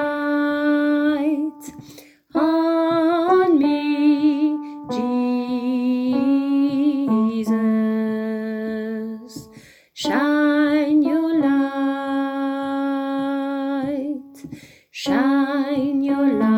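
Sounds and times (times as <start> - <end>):
alto voice singing a refrain: 0.0 - 16.5.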